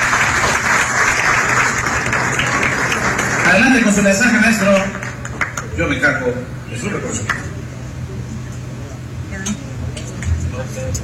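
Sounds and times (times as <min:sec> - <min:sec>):
audience applause: 0:00.0 - 0:06.0
speech: 0:03.5 - 0:05.0, 0:05.8 - 0:07.6, 0:10.7 - 0:11.0.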